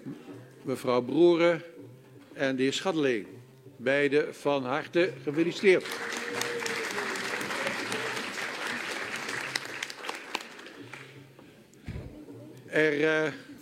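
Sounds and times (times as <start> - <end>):
speech: 0.7 - 1.7, 2.4 - 6.4, 12.8 - 13.5
applause in parliament chamber: 5.3 - 11.2.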